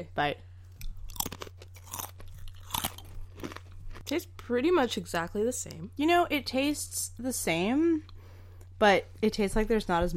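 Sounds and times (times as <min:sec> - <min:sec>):
speech: 0:00.0 - 0:00.5, 0:04.1 - 0:08.1, 0:08.8 - 0:10.1
low steady hum: 0:00.0 - 0:10.1
thin wheat crackers being chewed: 0:00.7 - 0:04.4.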